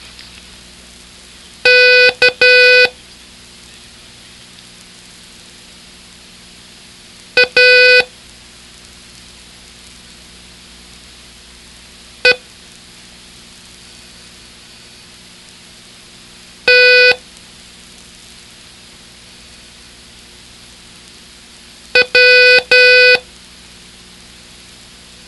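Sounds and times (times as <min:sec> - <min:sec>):
Morse code beeps: 0:01.7 - 0:02.9, 0:07.4 - 0:08.1, 0:16.7 - 0:17.2, 0:22.0 - 0:23.2.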